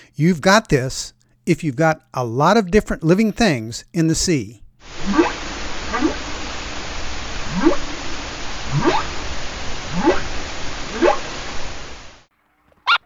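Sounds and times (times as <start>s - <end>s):
steady hiss of noise: 0.0s - 12.9s
speech: 0.2s - 5.2s
humpback whale calling in rising whooping upsweeps: 4.8s - 12.2s.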